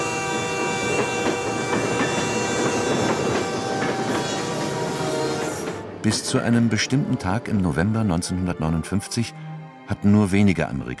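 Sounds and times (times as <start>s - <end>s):
faint high metallic squeals: 0.0s - 6.3s
train rumbling along the Santa Fe Railway main line through Holcomb: 0.0s - 8.5s
speech: 6.1s - 10.9s.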